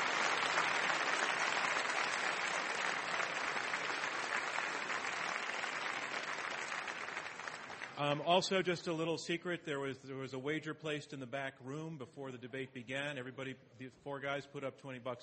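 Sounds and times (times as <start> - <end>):
crowd applauding: 0.0 - 8.2
speech: 8.0 - 15.2.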